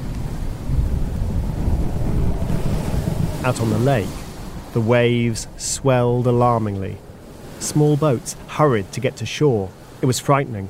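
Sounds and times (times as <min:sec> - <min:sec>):
thunder rumbling in a stormy night: 0:00.0 - 0:06.3
gusting wind: 0:00.0 - 0:10.6
steady rain: 0:00.0 - 0:10.6
speech: 0:03.4 - 0:07.0, 0:07.6 - 0:10.6.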